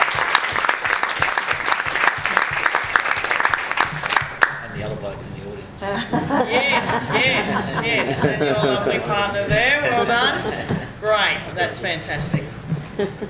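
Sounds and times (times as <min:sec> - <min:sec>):
round of applause: 0:00.0 - 0:04.7
laughter: 0:05.8 - 0:11.0, 0:12.9 - 0:13.2
speech: 0:07.6 - 0:13.2.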